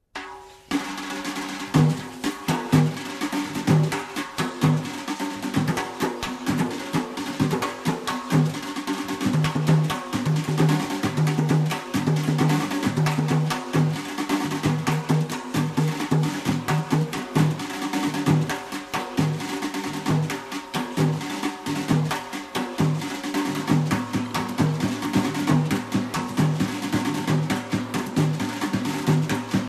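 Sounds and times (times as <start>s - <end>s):
drums playing: 0.1s - 29.6s.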